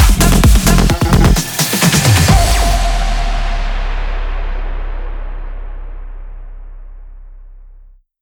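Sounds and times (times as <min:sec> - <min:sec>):
electronic dance music: 0:00.0 - 0:05.4.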